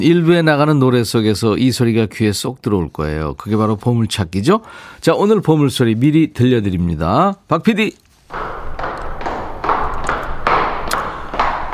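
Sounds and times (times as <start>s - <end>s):
speech: 0.0s - 8.6s
footsteps going down stairs: 8.1s - 11.7s.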